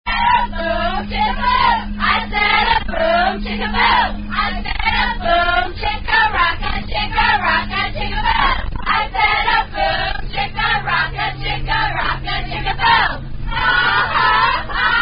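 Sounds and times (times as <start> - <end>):
people chanting: 0.1 - 15.0.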